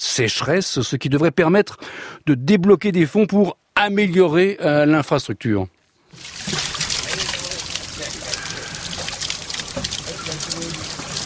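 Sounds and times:
speech: 0.0s - 6.3s
water pouring into buckets and cans at the Newlands natural spring in Cape Town: 6.1s - 11.2s.

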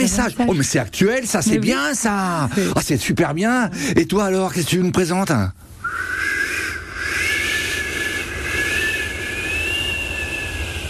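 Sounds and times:
speech: 0.0s - 6.1s
cold north wind blowing hard: 5.8s - 10.8s.

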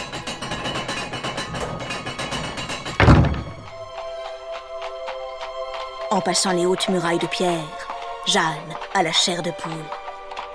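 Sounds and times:
drawbridge being lowered: 0.0s - 4.4s
speech: 6.1s - 10.0s.

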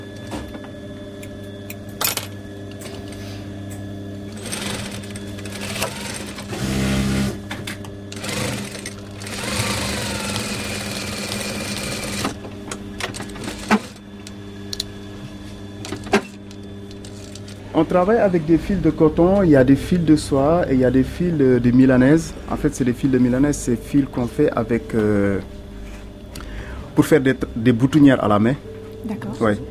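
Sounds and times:
sewing machine running: 4.3s - 7.4s, 8.1s - 12.4s, 13.1s - 14.0s
speech: 17.8s - 25.6s, 27.0s - 29.6s.

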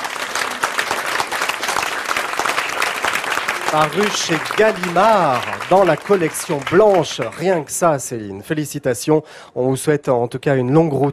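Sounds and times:
audience applause: 0.0s - 8.0s
speech: 3.7s - 11.1s.

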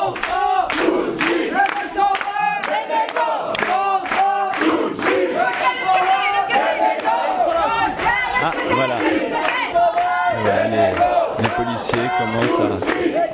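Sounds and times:
strikers chanting slogans: 0.0s - 13.3s
speech: 11.9s - 13.3s.

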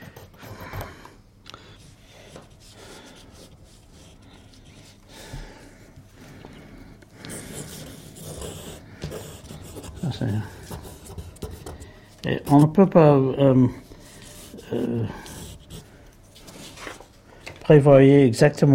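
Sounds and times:
drawing tool rubbing on paper while sketching a figure's legs: 0.0s - 0.8s, 1.8s - 5.0s, 7.2s - 12.8s, 14.0s - 16.0s
speech: 10.1s - 10.6s, 12.5s - 13.8s, 17.7s - 18.7s.

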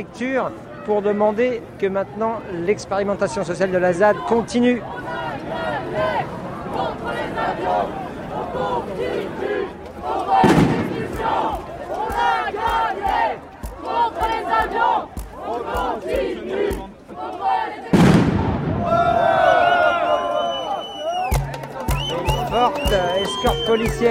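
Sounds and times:
speech: 0.0s - 10.6s, 22.6s - 24.0s
street demonstration crowd chanting and shouting: 0.0s - 24.0s
sharp bangs: 10.4s - 11.6s, 17.9s - 19.0s
loud whistling cry: 19.6s - 24.0s.

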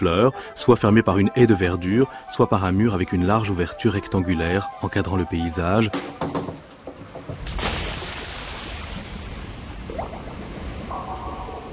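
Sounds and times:
speech: 0.0s - 6.6s
swimming pool water splash: 7.4s - 11.0s.

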